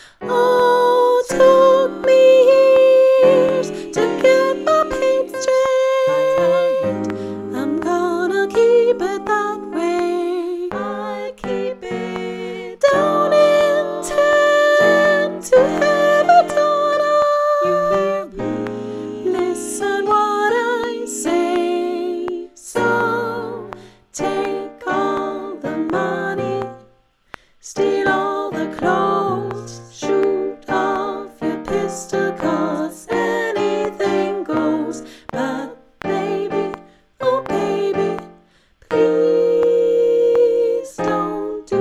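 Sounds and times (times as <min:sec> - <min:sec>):
soprano singing: 0:00.0 - 0:27.0, 0:27.6 - 0:41.8.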